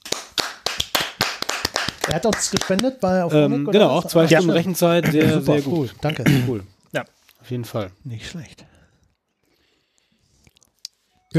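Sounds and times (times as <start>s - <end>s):
applause: 0.0s - 3.2s
speech: 2.1s - 8.7s.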